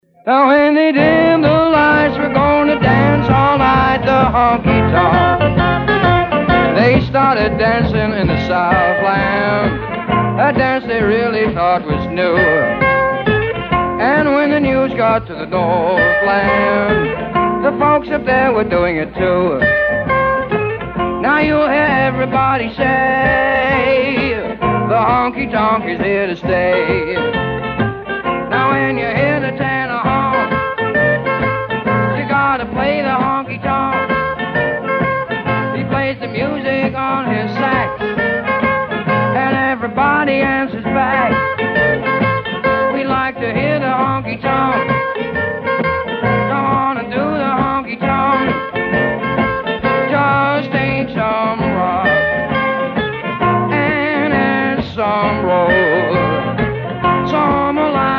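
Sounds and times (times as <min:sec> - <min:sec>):
honky tonk music: 0:00.0 - 0:58.1.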